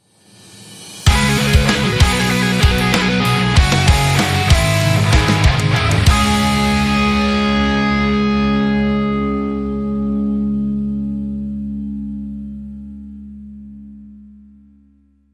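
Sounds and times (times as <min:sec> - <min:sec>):
arena rock music: 0:01.0 - 0:11.0.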